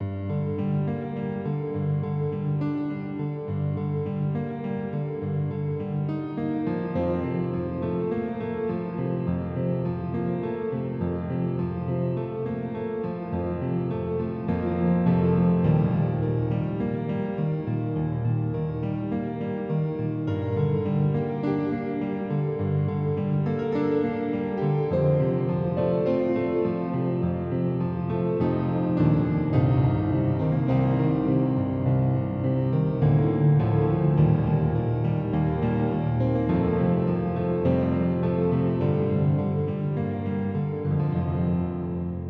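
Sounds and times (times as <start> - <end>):
piano: 0.0 - 42.2.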